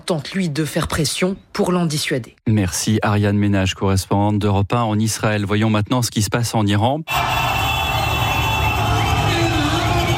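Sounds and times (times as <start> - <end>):
speech: 0.1 - 7.6
frenzied crowd cheering in Tehran: 7.1 - 10.1.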